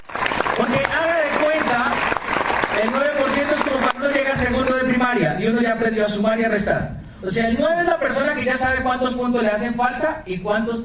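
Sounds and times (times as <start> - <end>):
audience applause: 0.0 - 4.2
speech: 5.1 - 10.8.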